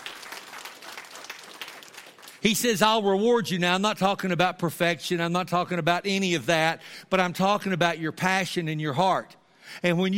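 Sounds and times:
audience clapping: 0:00.0 - 0:02.8
speech: 0:02.4 - 0:10.1.

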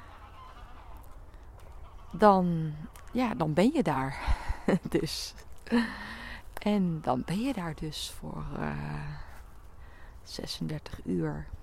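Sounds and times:
goose honking: 0:00.0 - 0:04.0, 0:06.7 - 0:09.6
speech: 0:02.1 - 0:09.2, 0:10.3 - 0:11.6.

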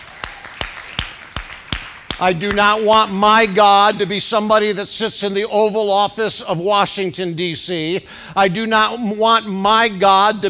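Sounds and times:
audience clapping: 0:00.0 - 0:04.9
speech: 0:02.2 - 0:10.4.

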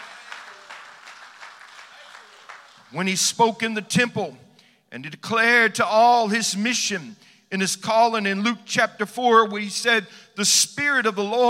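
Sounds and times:
audience clapping hands: 0:00.0 - 0:03.1
speech: 0:02.9 - 0:11.4.

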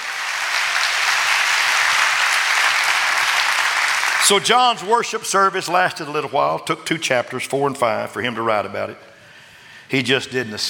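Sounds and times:
audience clapping hands: 0:00.0 - 0:05.0
speech: 0:04.2 - 0:09.1, 0:09.9 - 0:10.6.

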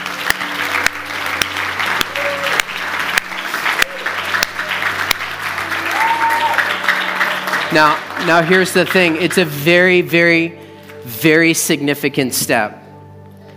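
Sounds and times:
audience applause: 0:00.0 - 0:09.7
speech: 0:07.7 - 0:12.8.

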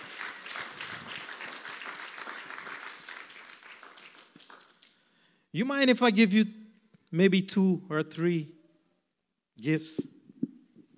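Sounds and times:
audience round of applause: 0:00.0 - 0:05.0
speech: 0:05.5 - 0:08.6, 0:09.6 - 0:10.2.

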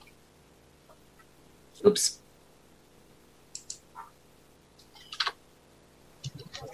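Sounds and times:
speech: 0:01.8 - 0:02.2
typing on a computer keyboard: 0:03.5 - 0:03.8, 0:05.0 - 0:05.4.

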